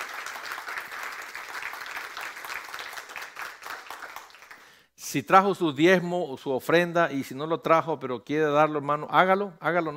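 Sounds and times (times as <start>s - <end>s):
church audience applause: 0.0s - 4.8s
speech: 5.1s - 9.9s.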